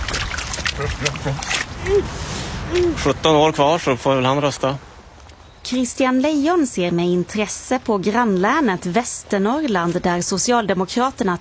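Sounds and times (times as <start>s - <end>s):
child's rubber boots splashing in puddle: 0.0s - 2.0s
voice vocalizing: 0.8s - 3.3s
speech: 0.8s - 4.9s, 5.7s - 11.3s.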